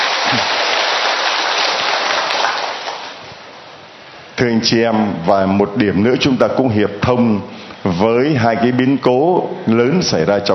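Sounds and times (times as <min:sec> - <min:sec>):
loud round of applause: 0:00.0 - 0:03.2
speech: 0:00.2 - 0:00.6, 0:04.4 - 0:10.5.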